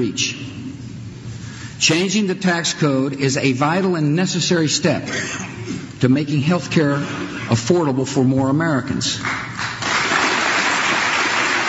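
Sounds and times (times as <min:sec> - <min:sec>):
speech: 0:00.0 - 0:00.6, 0:01.8 - 0:09.7
audience applauding a speech on a health insurance tax deduction: 0:09.2 - 0:11.6.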